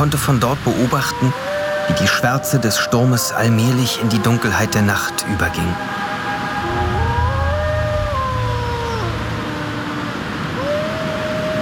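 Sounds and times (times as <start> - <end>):
speech: 0.0 - 6.0
wolves howling: 0.7 - 11.5
low rumble: 4.0 - 10.6.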